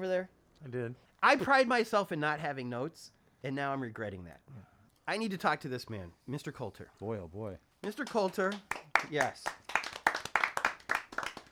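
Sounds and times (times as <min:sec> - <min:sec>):
speech: 0:00.0 - 0:09.7
people clapping in rhythm: 0:07.8 - 0:11.5.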